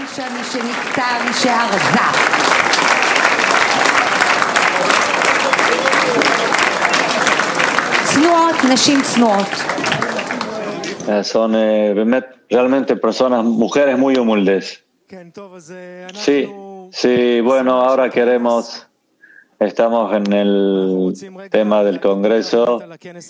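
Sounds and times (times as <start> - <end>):
audience applause: 0.0 - 11.1
cheering voices and calls: 0.0 - 11.1
speech: 0.2 - 3.1, 8.1 - 9.9, 11.1 - 18.9, 19.6 - 23.2.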